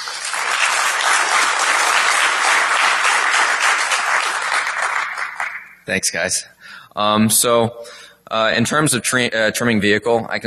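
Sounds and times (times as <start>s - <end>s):
audience applause: 0.0s - 5.8s
speech: 5.9s - 10.4s.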